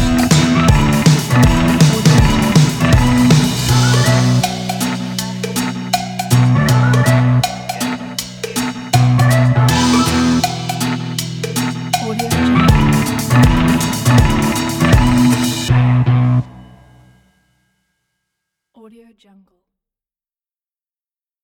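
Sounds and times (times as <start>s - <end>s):
vintage upbeat indie music: 0.0s - 16.6s.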